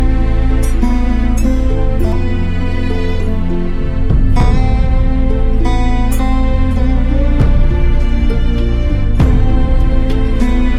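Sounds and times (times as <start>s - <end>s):
background music ringtone: 0.0s - 10.7s.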